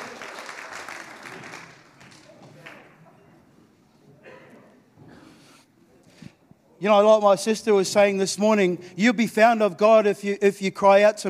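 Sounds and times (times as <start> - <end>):
audience clapping: 0.0 - 3.0
speech: 6.8 - 11.2.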